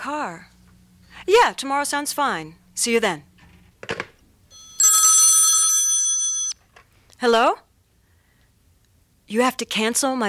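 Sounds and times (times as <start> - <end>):
speech: 0.0 - 0.6, 1.2 - 3.3, 7.2 - 7.6, 9.3 - 10.2
telephone bell ringing: 4.5 - 6.6.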